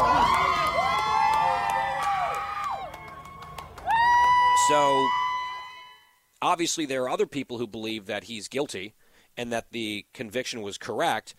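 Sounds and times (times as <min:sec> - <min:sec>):
supporters cheering and whooping outside a courthouse: 0:00.0 - 0:06.1
speech: 0:04.7 - 0:05.2, 0:06.4 - 0:11.3.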